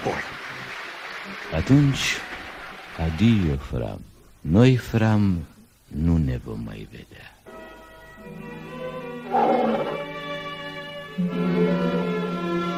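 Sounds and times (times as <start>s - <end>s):
speech: 0.0s - 0.3s, 1.3s - 2.3s, 3.0s - 7.3s, 11.2s - 12.0s
tiger roaring at night: 9.2s - 10.2s, 11.3s - 12.6s.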